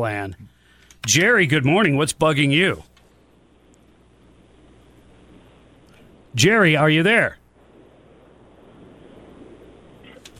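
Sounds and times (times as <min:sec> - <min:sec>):
speech: 0:00.0 - 0:02.9, 0:06.4 - 0:07.4
caller breathing on the phone line: 0:00.5 - 0:01.0.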